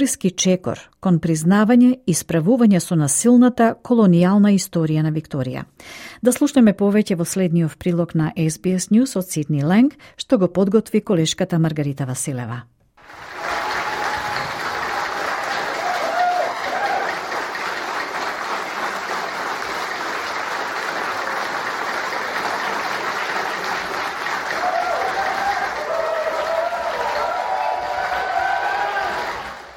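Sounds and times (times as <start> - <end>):
speech: 0.0 - 13.3
applause and cheering in Victoria's parliament after Treaty legislation passed: 13.0 - 29.7.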